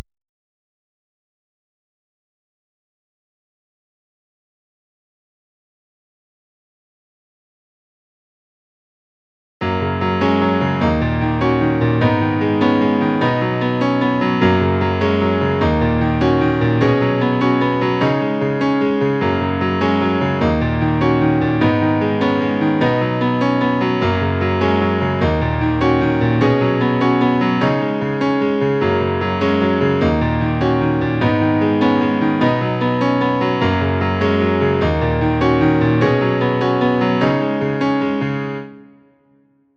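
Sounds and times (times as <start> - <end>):
scenic piano music: 9.6 - 39.4.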